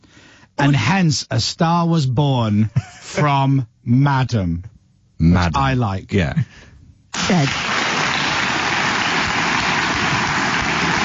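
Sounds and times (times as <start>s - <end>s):
speech: 0.6s - 6.6s, 7.3s - 7.7s
applause sound effect: 7.2s - 11.0s.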